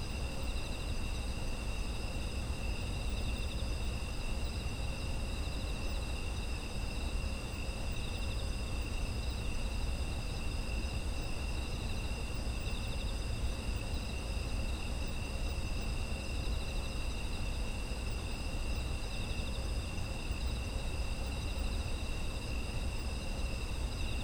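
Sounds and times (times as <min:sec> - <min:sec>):
insects trilling: 0:00.0 - 0:24.2.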